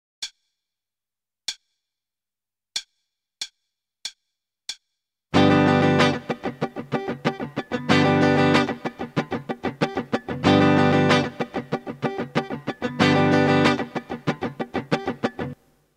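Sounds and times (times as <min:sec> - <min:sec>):
starter guitar rhythm: 0:05.3 - 0:15.6.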